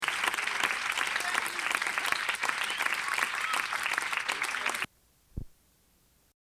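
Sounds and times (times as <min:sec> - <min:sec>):
audience applause: 0:00.0 - 0:04.9.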